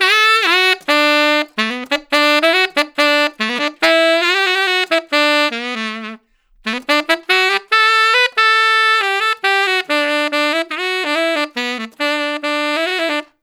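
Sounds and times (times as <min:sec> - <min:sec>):
traditional jazz tenor saxophone solo: 0:00.0 - 0:13.4.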